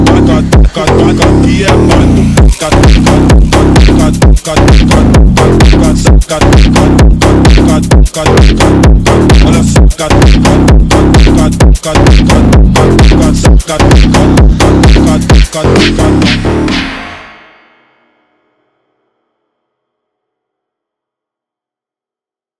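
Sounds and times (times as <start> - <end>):
Brazilian phonk music: 0.0 - 17.6.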